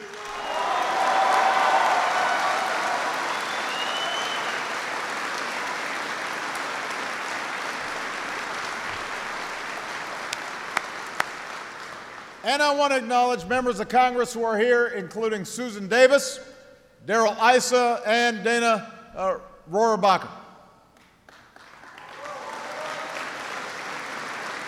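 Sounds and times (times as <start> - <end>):
audience applause: 0.0 - 12.4, 21.3 - 24.6
speech: 12.4 - 20.4.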